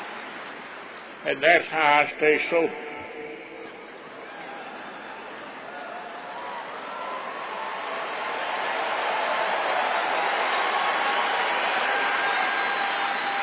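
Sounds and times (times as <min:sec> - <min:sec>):
speech: 0:01.2 - 0:02.9
audience clapping: 0:06.3 - 0:13.4.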